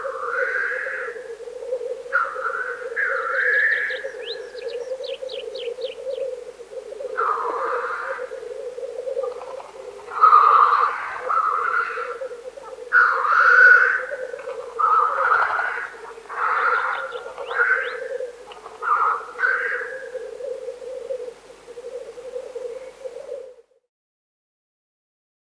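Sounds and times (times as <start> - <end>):
black grouse bubbling coo: 0.0 - 23.8.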